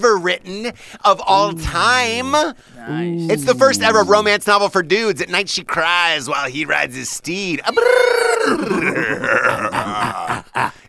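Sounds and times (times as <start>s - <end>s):
speech: 0.0s - 10.8s
laughter: 0.1s - 5.8s, 7.5s - 10.8s
person imitating a mating coyote: 1.2s - 4.5s, 7.7s - 10.8s.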